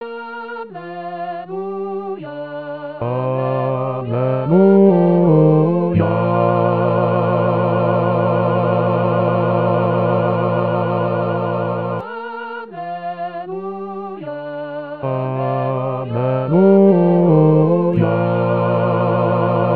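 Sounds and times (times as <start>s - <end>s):
bass voices singing a gospel acclamation: 3.0s - 12.0s, 15.0s - 19.7s.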